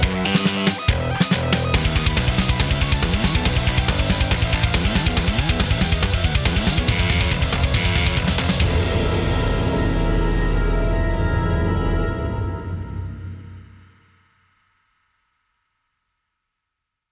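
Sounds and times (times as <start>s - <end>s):
arpeggios backing track: 0.0s - 12.9s.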